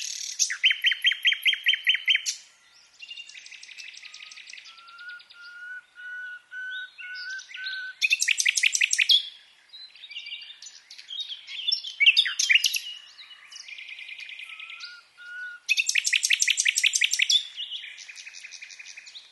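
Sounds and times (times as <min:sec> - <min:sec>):
common nightingale song: 0:00.0 - 0:19.3.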